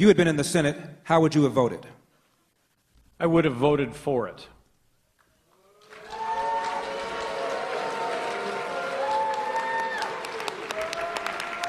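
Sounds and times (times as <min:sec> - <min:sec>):
speech: 0:00.0 - 0:02.0, 0:03.2 - 0:04.6
audience booing: 0:05.6 - 0:11.6
scattered claps: 0:05.8 - 0:11.6.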